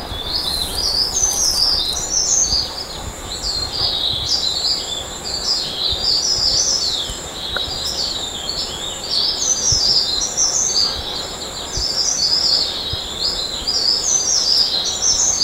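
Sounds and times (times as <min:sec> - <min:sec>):
Mountain leaf warbler warbling on Mount Kinabalu: 0:00.0 - 0:15.4.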